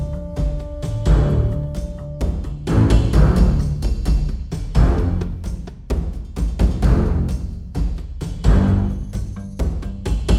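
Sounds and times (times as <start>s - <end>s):
combat music: 0.0s - 5.9s, 6.7s - 7.8s, 8.4s - 9.4s.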